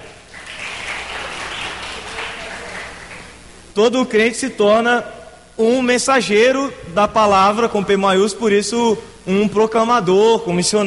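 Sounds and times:
audience applause: 0.0 - 3.5
speech: 3.8 - 10.8.

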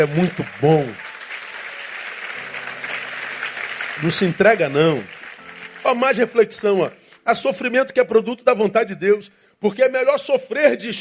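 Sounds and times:
speech: 0.0 - 1.0, 4.0 - 5.2, 5.8 - 10.9
audience applauding: 0.0 - 7.2.

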